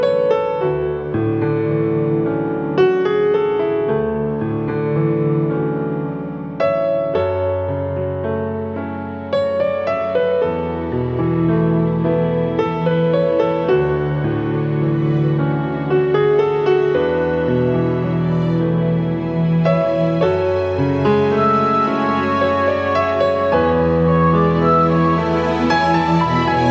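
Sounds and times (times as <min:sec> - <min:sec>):
piano note A: 0:00.0 - 0:26.6.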